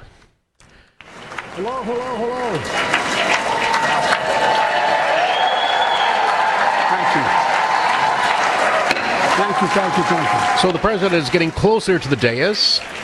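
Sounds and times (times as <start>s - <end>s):
applause in the chamber: 1.0s - 13.0s
speech: 1.6s - 4.9s, 9.4s - 13.0s.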